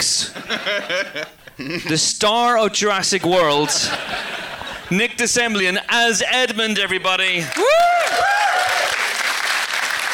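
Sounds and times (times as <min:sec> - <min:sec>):
speech: 0:00.0 - 0:08.3
laughter: 0:00.2 - 0:02.0, 0:03.4 - 0:04.9
person whooping: 0:07.5 - 0:09.1
crowd applause: 0:07.5 - 0:10.1.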